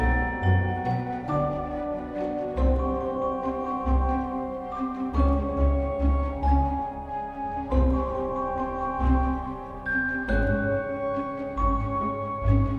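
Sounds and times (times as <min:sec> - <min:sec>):
music: 0:00.0 - 0:12.7.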